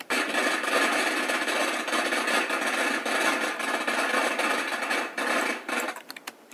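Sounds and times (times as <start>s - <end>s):
firecrackers being set off: 0.0s - 6.0s.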